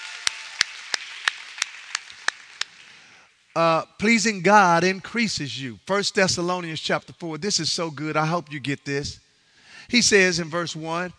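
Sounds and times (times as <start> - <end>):
audience hand clapping: 0.0 - 3.2
speech: 3.6 - 9.2, 9.9 - 11.1.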